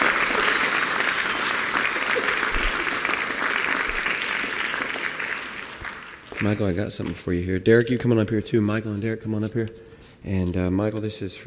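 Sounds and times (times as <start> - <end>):
audience applause: 0.0 - 6.7
speech: 6.4 - 11.4.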